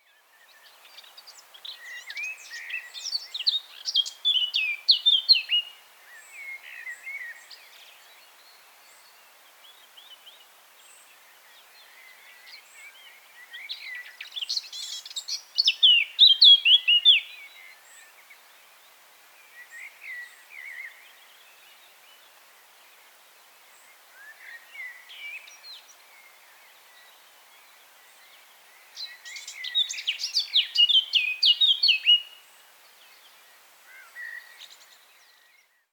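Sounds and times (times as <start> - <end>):
Sylvia atricapilla singing: 1.7 - 5.7, 13.8 - 17.4, 29.0 - 32.4.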